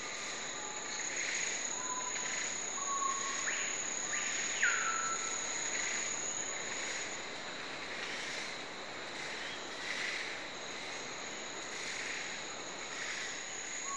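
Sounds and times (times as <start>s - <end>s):
jungle ambience: 0.0s - 13.9s.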